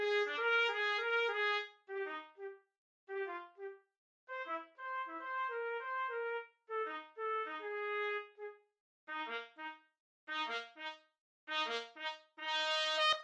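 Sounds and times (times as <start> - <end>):
trumpet duet playing a rag: 0.0 - 2.4, 4.4 - 8.3, 10.3 - 13.2.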